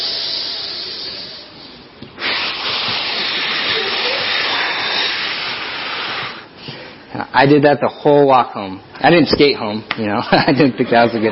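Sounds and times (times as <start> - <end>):
person imitating deep rhythmic breathing exercise for pregnant women: 0.0 - 7.1
speech: 7.4 - 11.3
laughter: 10.2 - 11.3.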